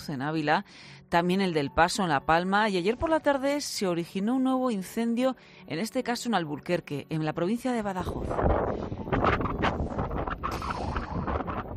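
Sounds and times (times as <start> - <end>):
speech: 0.0 - 9.4
wind at Alburquerque wildfire in Badajoz buffeting the microphone: 8.0 - 11.7.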